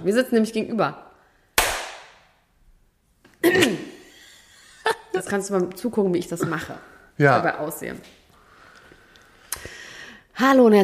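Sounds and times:
speech: 0:00.0 - 0:01.0, 0:05.3 - 0:08.2, 0:10.4 - 0:10.8
quick snap: 0:01.6 - 0:02.2
single sharp hand clap with a short ringing decay: 0:01.6 - 0:02.2.

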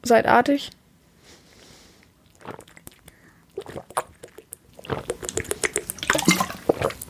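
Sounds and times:
speech: 0:00.1 - 0:00.8, 0:02.4 - 0:02.7
person sipping a drink: 0:01.6 - 0:07.0.

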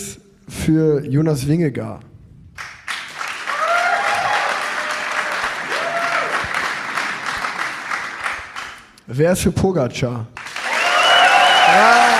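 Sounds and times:
speech: 0:00.0 - 0:02.1, 0:09.1 - 0:10.4, 0:11.7 - 0:12.1
crowd cheering and applauding: 0:02.8 - 0:08.9, 0:10.4 - 0:12.1
whoops and shouts: 0:03.5 - 0:06.5, 0:10.6 - 0:12.1.

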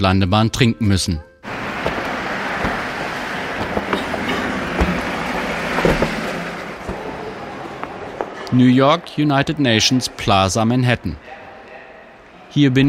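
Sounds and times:
speech: 0:00.0 - 0:01.3, 0:08.5 - 0:11.4, 0:12.5 - 0:12.8
airplane taking off and accelerating: 0:01.4 - 0:08.6.

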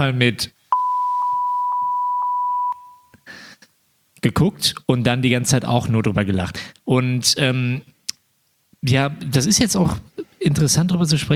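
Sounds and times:
speech: 0:00.0 - 0:00.6, 0:04.2 - 0:07.9, 0:08.8 - 0:11.3
censor bleep over names: 0:00.7 - 0:03.1.

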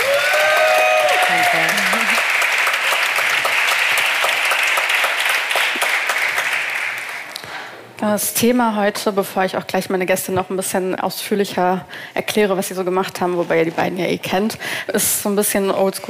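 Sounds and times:
audience applause: 0:00.0 - 0:07.4
speech: 0:08.0 - 0:16.0.

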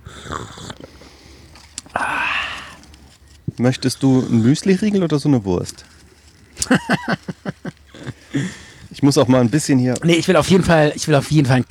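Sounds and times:
person slurping coffee: 0:00.0 - 0:03.2, 0:03.8 - 0:04.7
speech: 0:03.6 - 0:05.9, 0:06.7 - 0:07.3, 0:08.4 - 0:11.6
laughter: 0:06.6 - 0:08.8.

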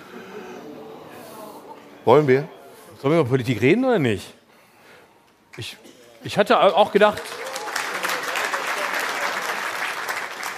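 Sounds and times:
speech: 0:02.0 - 0:04.4, 0:05.6 - 0:07.3
lukewarm audience applause: 0:06.5 - 0:10.5.

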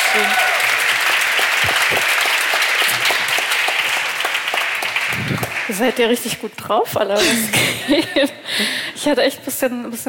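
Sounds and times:
audience applause: 0:00.0 - 0:06.2
speech: 0:00.2 - 0:00.5, 0:05.8 - 0:10.0.

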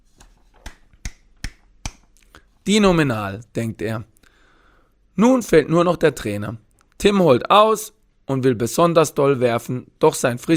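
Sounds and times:
hands clapping in applause at a frisbee game: 0:00.6 - 0:02.3
speech: 0:02.6 - 0:04.1, 0:05.2 - 0:10.5.

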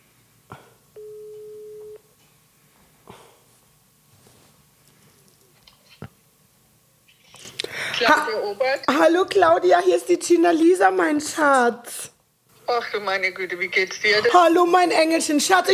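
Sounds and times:
phone line hiss: 0:01.0 - 0:02.0
telephone ringback tone during outgoing call: 0:01.0 - 0:02.0
speech: 0:08.0 - 0:12.1, 0:12.7 - 0:15.7.

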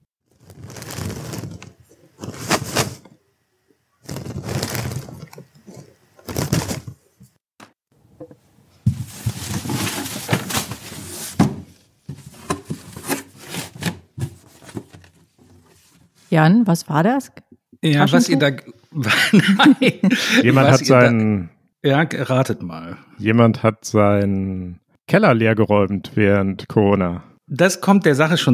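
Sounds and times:
papers being packed into a cardboard box: 0:00.4 - 0:03.0, 0:04.1 - 0:07.0, 0:08.9 - 0:16.1
speech: 0:16.4 - 0:28.5
laughter: 0:18.1 - 0:21.4.

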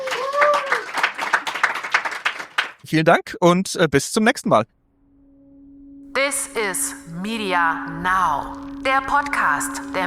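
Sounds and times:
audience applause: 0:00.0 - 0:02.8
speech: 0:02.9 - 0:04.8, 0:06.4 - 0:10.0.

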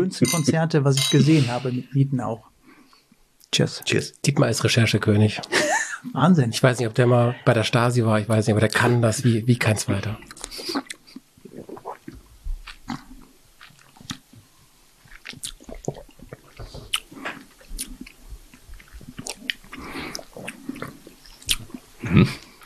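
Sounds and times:
speech: 0:00.0 - 0:02.5, 0:03.5 - 0:10.8
people smacking lips while tasting wine: 0:10.3 - 0:14.4, 0:15.0 - 0:22.6.

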